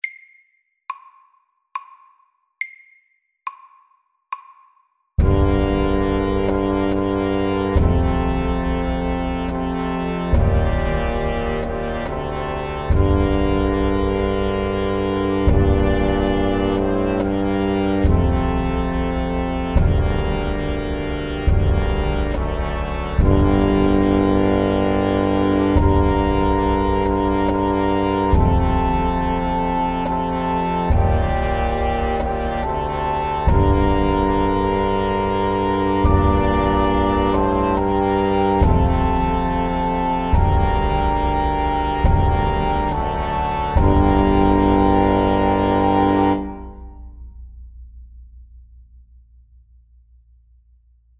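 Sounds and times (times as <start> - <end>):
slow hemiola rhythm: 0.0 - 47.3.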